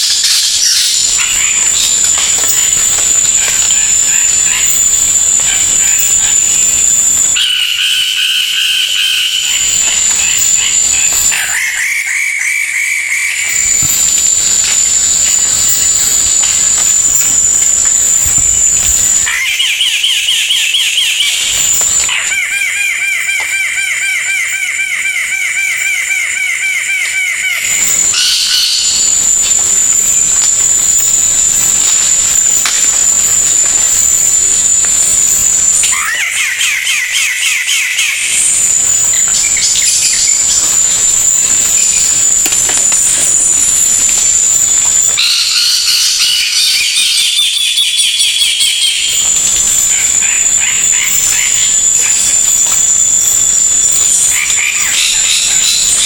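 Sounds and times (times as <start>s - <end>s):
high whine: 0.0s - 11.6s, 13.4s - 19.6s, 27.6s - 36.3s, 38.1s - 47.7s, 48.5s - 56.0s
bird song: 0.0s - 56.0s.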